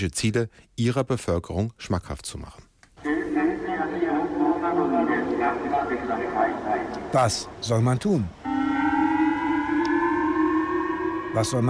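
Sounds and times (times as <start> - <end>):
speech: 0.0 - 2.7, 4.7 - 8.5, 11.3 - 11.6
public loudspeaker missile warning siren wailing: 3.0 - 7.7, 8.4 - 11.6.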